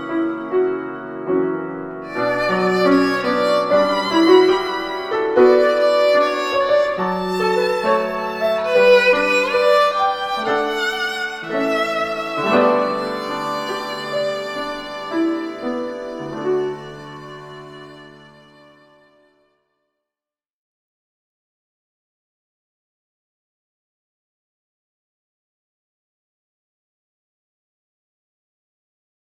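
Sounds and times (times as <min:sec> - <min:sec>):
violin and piano duo: 0:00.0 - 0:19.6.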